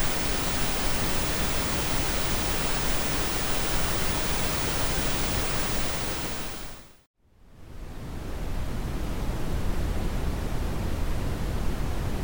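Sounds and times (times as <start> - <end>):
pink noise: 0.0 - 7.0
white noise: 0.0 - 12.2.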